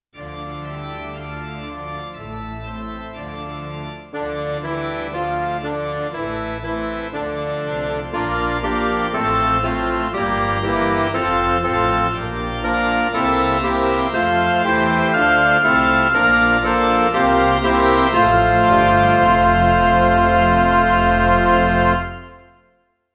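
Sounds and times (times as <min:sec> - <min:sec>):
MIDI music: 0:04.1 - 0:22.6.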